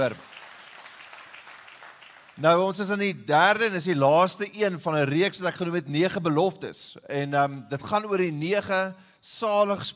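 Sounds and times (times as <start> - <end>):
speech: 0.0 - 0.3, 2.4 - 9.9
audience hand clapping: 0.0 - 2.8.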